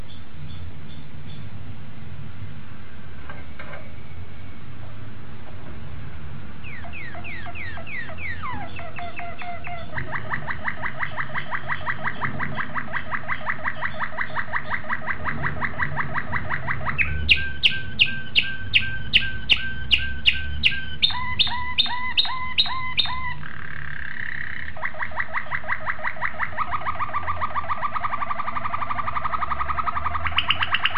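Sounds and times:
domestic canary trilling and chirping: 6.6s - 30.9s.

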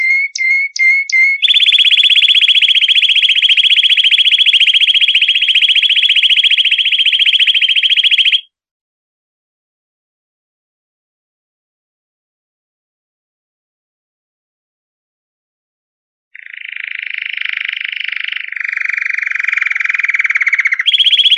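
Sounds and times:
canary buzzy trill of fast repeated notes: 0.0s - 8.5s, 16.4s - 21.3s.

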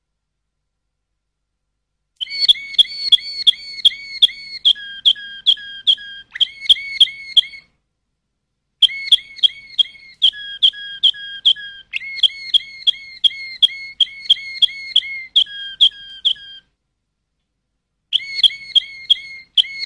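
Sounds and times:
canary singing chips and whistles: 2.2s - 7.7s, 8.8s - 16.7s, 18.1s - 19.8s.

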